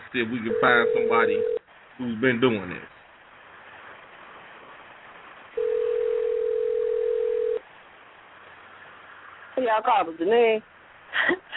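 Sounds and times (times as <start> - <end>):
faint hiss: 0.0 - 11.5
speech: 0.1 - 3.0, 9.6 - 11.5
telephone dial tone: 0.5 - 1.6, 5.6 - 7.6.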